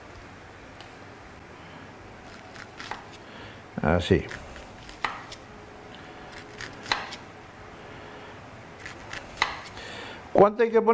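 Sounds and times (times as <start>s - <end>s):
steady low noise: 0.0s - 10.9s
knife slowly chopping an onion into very small pieces: 2.2s - 3.2s, 4.2s - 5.4s, 6.3s - 7.2s, 8.8s - 9.8s
speech: 3.8s - 4.4s, 10.4s - 10.9s.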